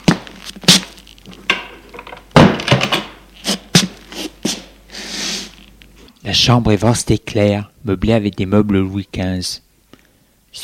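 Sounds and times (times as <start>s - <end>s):
door thump: 2.4s - 3.1s
speech: 6.3s - 9.6s.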